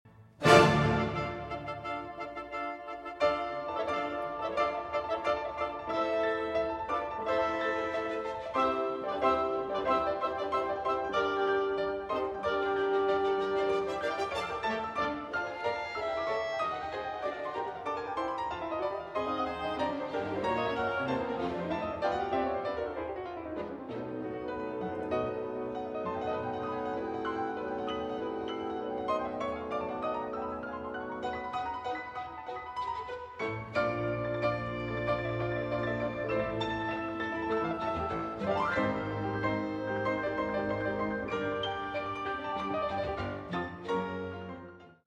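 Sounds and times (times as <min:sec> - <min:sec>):
piano concerto finale in D minor alla breve: 0:00.1 - 0:45.0.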